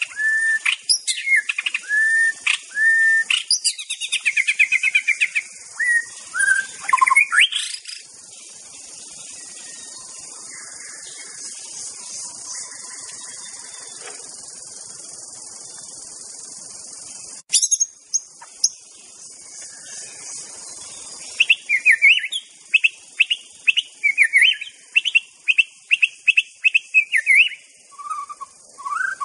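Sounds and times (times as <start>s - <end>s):
high insect hum: 0.0s - 29.2s
white-rumped shama singing: 0.0s - 29.2s.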